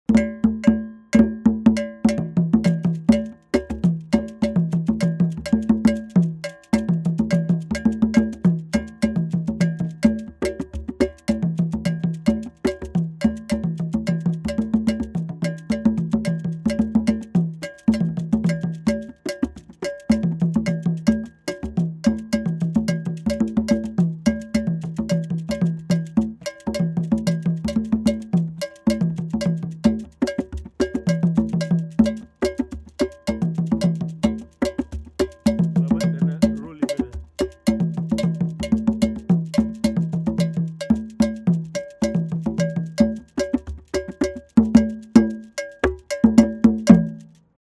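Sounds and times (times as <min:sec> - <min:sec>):
percussion: 0:00.0 - 0:47.6.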